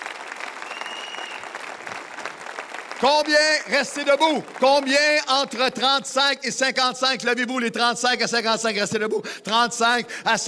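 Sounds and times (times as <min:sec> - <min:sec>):
audience applause in a large hall: 0:00.0 - 0:05.3
speech: 0:03.0 - 0:10.4.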